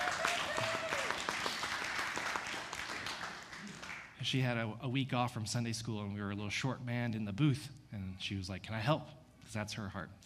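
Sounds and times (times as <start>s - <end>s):
audience clapping for a woman who helped at the soundboard: 0.0s - 4.2s
speech: 4.2s - 10.2s.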